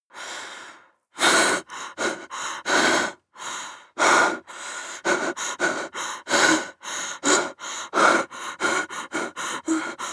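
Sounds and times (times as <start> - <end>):
woman breathing in fear: 0.1 - 10.1.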